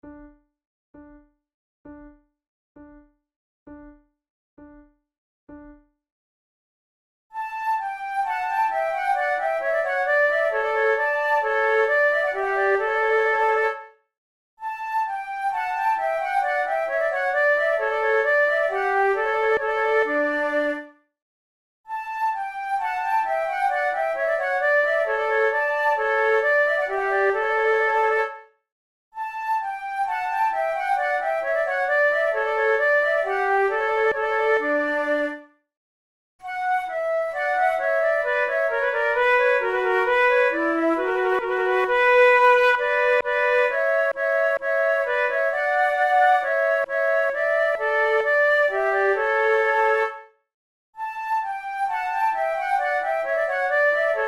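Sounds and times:
flute playing a trio sonata gavotte: 7.4s - 13.8s, 14.6s - 20.9s, 21.9s - 28.4s, 29.2s - 35.4s, 36.4s - 50.3s, 51.0s - 54.2s.

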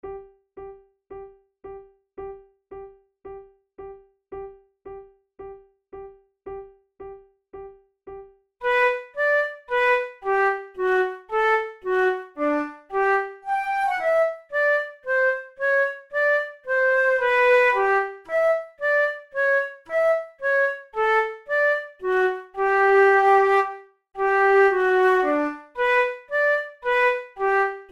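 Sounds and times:
flute method exercise: 8.6s - 27.9s.

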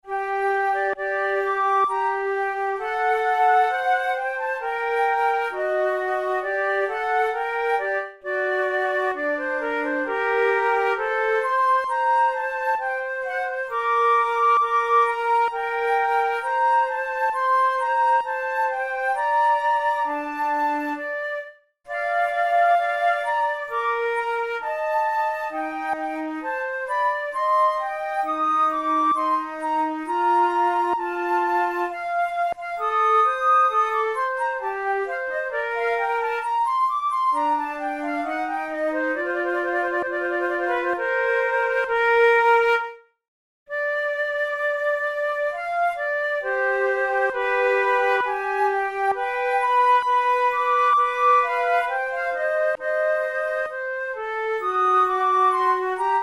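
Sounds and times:
flute playing sonata adagio: 0.0s - 56.2s.

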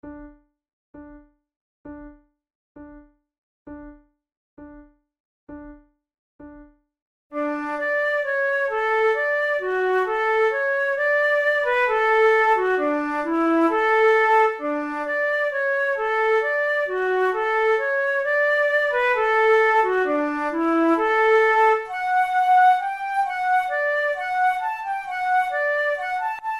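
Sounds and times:
flute duet: 7.4s - 26.5s.

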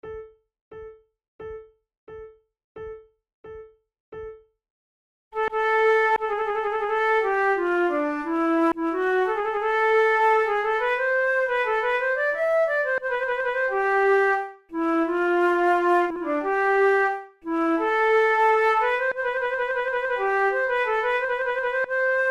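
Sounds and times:
two flutes playing an allemande: 5.4s - 22.2s.

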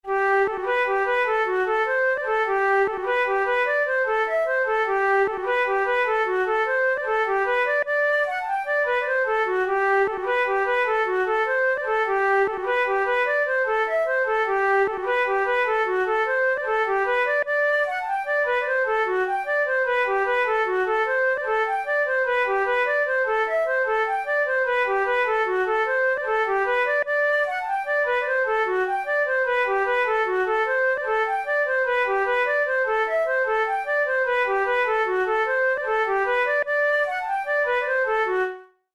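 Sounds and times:
flute playing rolling jig: 0.0s - 38.9s.

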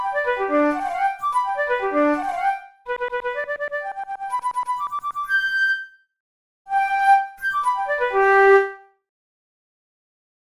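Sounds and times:
studies for the Boehm flute: 0.0s - 6.0s, 6.7s - 9.0s.

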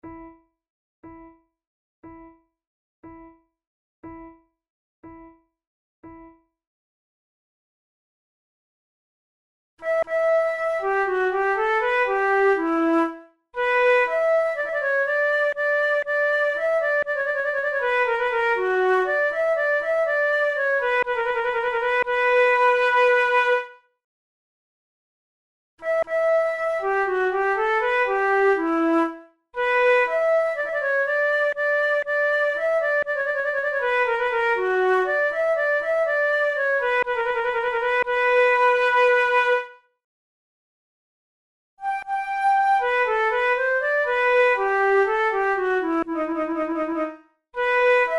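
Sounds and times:
allemande played on flute: 9.8s - 23.6s, 25.8s - 39.6s, 41.8s - 48.1s.

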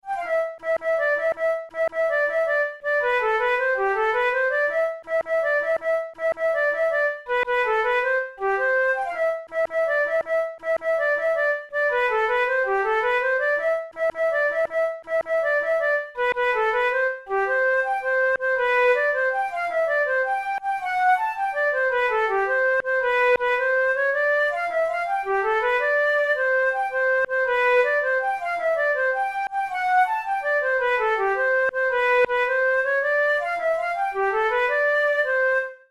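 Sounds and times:
dance flute music: 0.0s - 35.9s.

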